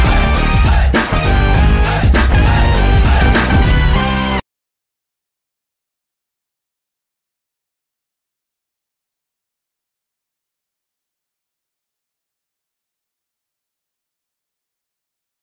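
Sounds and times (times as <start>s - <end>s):
Telugu background music ringtone: 0.0s - 4.4s.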